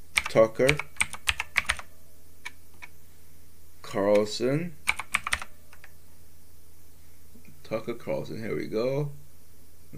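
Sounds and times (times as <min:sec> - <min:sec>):
typing on a computer keyboard: 0:00.1 - 0:02.9, 0:04.1 - 0:05.9
speech: 0:00.4 - 0:00.9, 0:03.9 - 0:04.8, 0:07.7 - 0:09.2.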